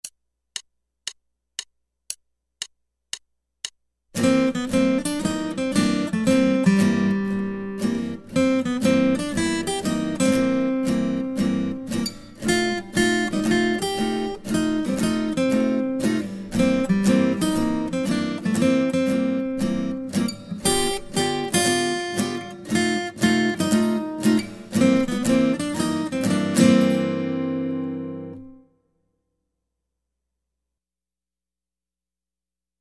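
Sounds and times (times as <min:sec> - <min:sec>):
guitar: 0:04.2 - 0:28.8.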